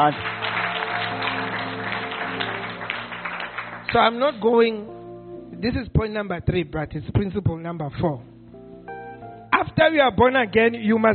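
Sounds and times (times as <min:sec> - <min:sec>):
speech: 0:00.0 - 0:00.4, 0:03.9 - 0:08.3, 0:09.6 - 0:11.1
audience clapping hands: 0:00.0 - 0:04.4.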